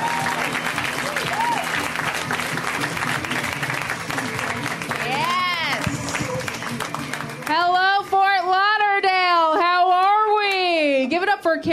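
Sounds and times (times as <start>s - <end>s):
comedy show audience clapping for a comedian in Fort Lauderdale: 0.0s - 8.7s
comedy show crowd noise in Fort Lauderdale: 0.0s - 11.7s.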